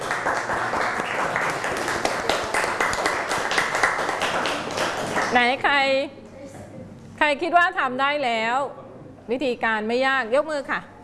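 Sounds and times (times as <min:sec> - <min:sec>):
students clapping: 0:00.0 - 0:05.4
speech: 0:05.3 - 0:06.2, 0:07.2 - 0:10.9.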